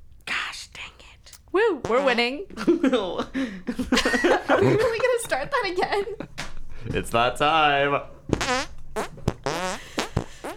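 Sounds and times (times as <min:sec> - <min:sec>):
laughter: 0:00.6 - 0:04.0, 0:07.5 - 0:09.0
speech: 0:00.9 - 0:09.1
hand fart noises made by squeezing air through cupped hands: 0:01.8 - 0:02.3, 0:08.3 - 0:10.5.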